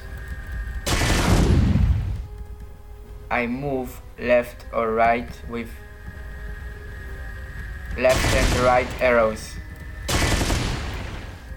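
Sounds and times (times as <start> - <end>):
video game gunfire: 0.8 - 2.2, 8.1 - 9.1, 10.1 - 11.4
speech: 3.3 - 5.8, 8.0 - 9.6.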